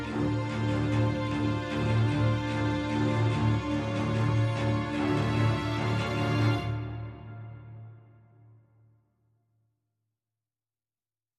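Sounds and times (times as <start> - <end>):
strings: 0.0 - 8.5.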